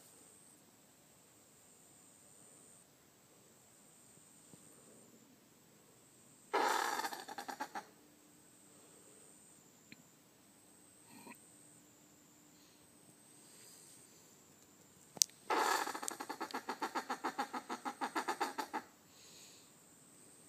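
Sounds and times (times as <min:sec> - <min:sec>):
possum noise: 0:06.5 - 0:07.9, 0:15.5 - 0:19.0.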